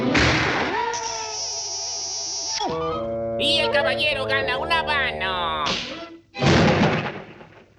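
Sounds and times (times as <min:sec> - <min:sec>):
cartoon pistol firing in a duel: 0:00.1 - 0:01.0, 0:05.7 - 0:07.7
speech: 0:03.5 - 0:06.0.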